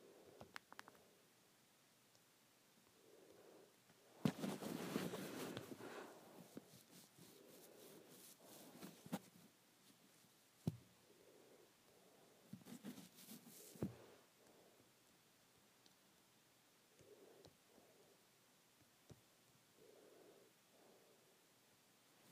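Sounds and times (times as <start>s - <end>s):
hair braiding rustles and brushing strokes: 4.2s - 10.0s, 12.6s - 14.0s.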